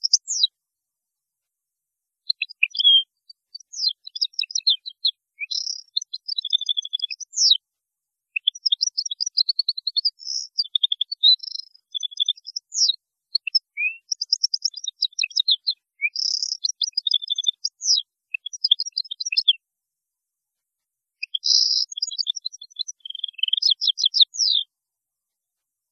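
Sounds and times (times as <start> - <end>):
European goldfinch singing: 0.0 - 0.5, 2.3 - 7.6, 8.4 - 19.6, 21.2 - 24.7.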